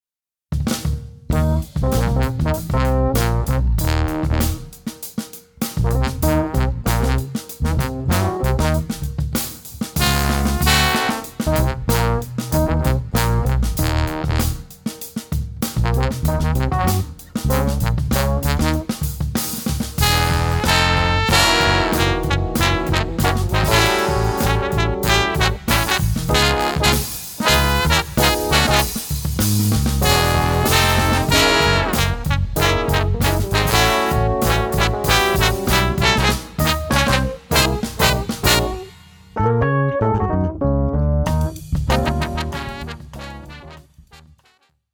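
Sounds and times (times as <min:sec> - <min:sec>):
funk music: 0:00.6 - 0:44.4.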